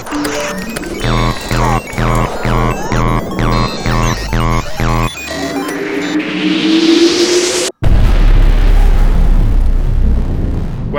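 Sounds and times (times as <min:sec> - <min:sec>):
rising electronic whine of a computer exploding sound effect: 0:00.7 - 0:07.7
computer exploding sound effect blast: 0:07.8 - 0:10.9.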